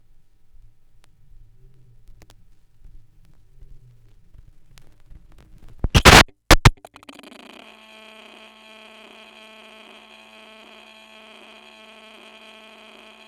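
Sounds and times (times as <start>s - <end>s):
vinyl record crackle: 0.6s - 7.0s.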